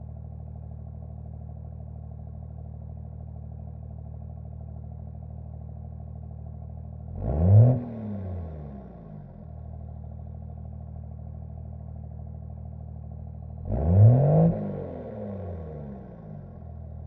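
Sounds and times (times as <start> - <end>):
1999 Dodge Ram 2500 diesel exhaust starting, idling, blipping and shutting off: 7.1 - 9.8, 13.5 - 17.0.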